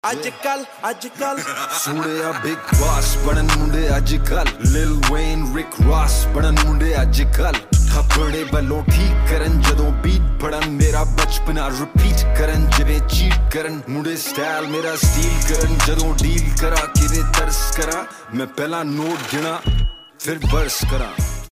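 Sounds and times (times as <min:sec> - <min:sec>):
Hindi rap ringtone: 0:00.0 - 0:21.5
laughter: 0:01.2 - 0:02.8.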